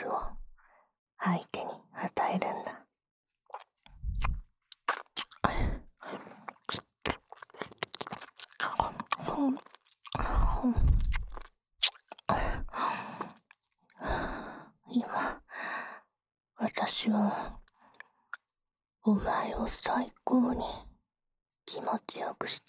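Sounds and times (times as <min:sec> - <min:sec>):
adult woman's teasing voice: 0:00.0 - 0:00.4, 0:01.2 - 0:02.8, 0:05.4 - 0:05.8, 0:08.6 - 0:11.0, 0:12.3 - 0:12.7, 0:14.9 - 0:15.4, 0:16.6 - 0:17.6, 0:19.1 - 0:20.9, 0:21.7 - 0:22.6
ear licking on the right ear: 0:04.2 - 0:05.5, 0:06.5 - 0:12.4.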